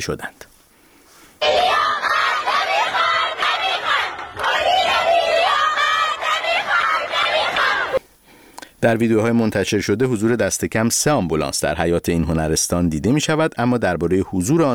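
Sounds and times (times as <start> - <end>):
speech: 0.0 - 0.5, 8.8 - 14.7
crowd chanting protest slogans: 1.4 - 8.0.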